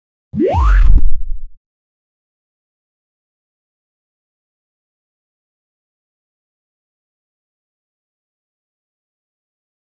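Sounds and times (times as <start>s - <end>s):
platformer game character jump effect: 0.4s - 1.6s.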